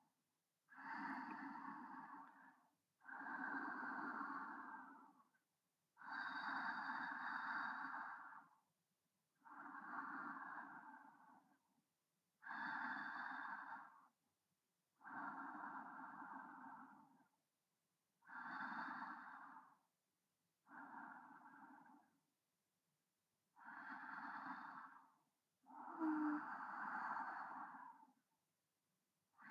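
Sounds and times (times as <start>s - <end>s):
breathing of a person lying alongside, centred: 0.7s - 5.4s, 6.0s - 8.6s, 9.4s - 11.6s, 12.4s - 14.2s, 15.0s - 17.3s, 18.2s - 19.9s, 20.6s - 22.2s, 23.5s - 28.3s.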